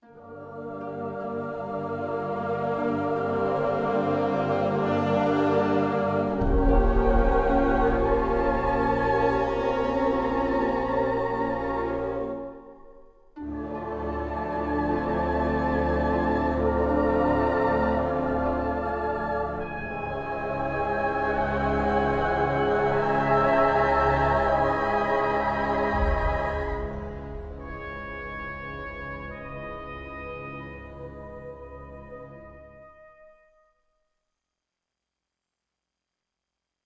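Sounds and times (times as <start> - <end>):
castle music: 0.0 - 33.6.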